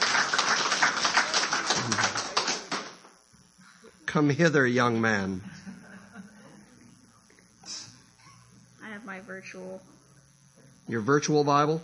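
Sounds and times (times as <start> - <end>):
audience applauding: 0.0 - 3.0
speech: 4.1 - 5.5, 9.4 - 10.0, 10.9 - 11.8.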